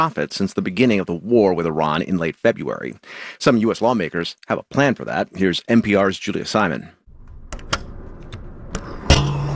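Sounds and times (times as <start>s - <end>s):
speech: 0.0s - 7.0s
sharp clunks and clicks at a gas station: 7.2s - 9.4s.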